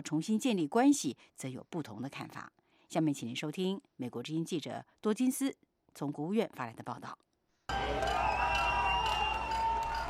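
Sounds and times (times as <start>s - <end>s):
speech: 0.0s - 8.1s
crowd cheering and shouting: 7.7s - 10.0s.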